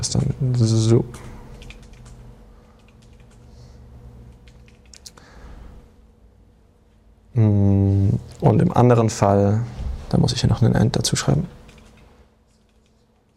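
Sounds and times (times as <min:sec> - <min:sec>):
speech: 0:00.0 - 0:01.3, 0:07.4 - 0:07.6, 0:08.4 - 0:11.6
typing code on a computer keyboard: 0:01.5 - 0:03.4, 0:04.3 - 0:05.1, 0:11.6 - 0:13.3.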